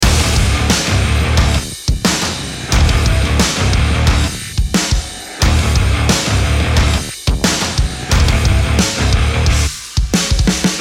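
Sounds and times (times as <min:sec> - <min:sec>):
fight music loop: 0:00.0 - 0:10.7.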